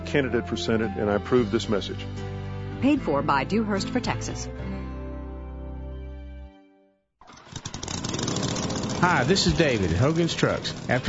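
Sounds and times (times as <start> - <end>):
speech: 0.1 - 4.8, 9.0 - 11.0
lawn mower engine starting and running rough: 7.2 - 11.0.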